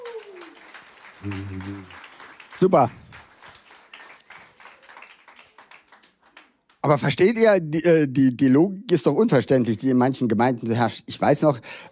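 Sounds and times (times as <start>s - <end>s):
audience applause: 0.0s - 6.7s
speech: 1.2s - 2.0s, 2.6s - 3.0s, 6.9s - 11.9s.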